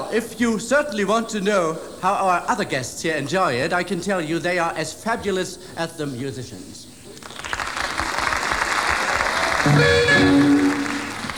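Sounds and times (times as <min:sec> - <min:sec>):
speech: 0:00.1 - 0:06.9
audience clapping hands: 0:07.2 - 0:11.3.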